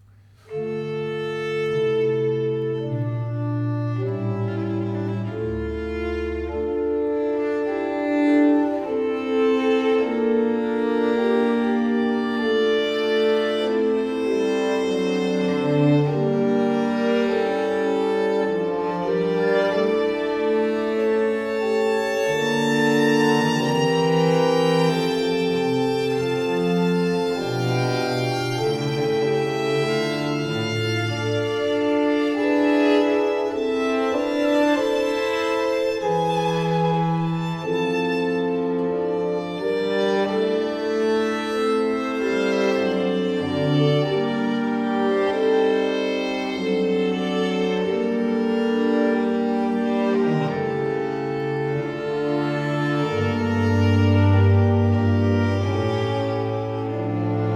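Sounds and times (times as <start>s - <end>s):
sonata slow movement: 0.0s - 57.5s.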